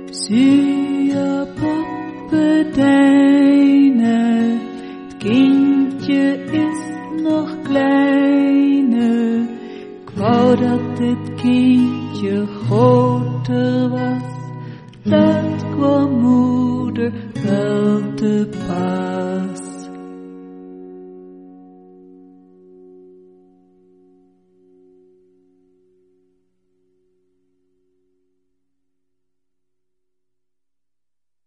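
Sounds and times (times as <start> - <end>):
Dutch lullaby: 0.0 - 20.2.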